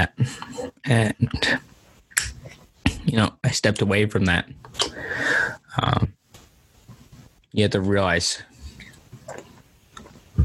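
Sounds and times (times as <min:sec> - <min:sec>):
speech: 0:00.0 - 0:01.6, 0:03.1 - 0:06.2, 0:07.6 - 0:08.5
person sipping water: 0:08.6 - 0:10.3.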